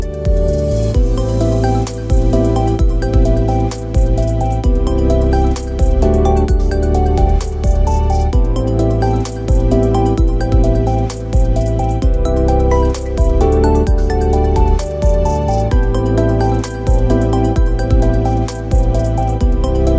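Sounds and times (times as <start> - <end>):
lounge music: 0.0 - 19.9.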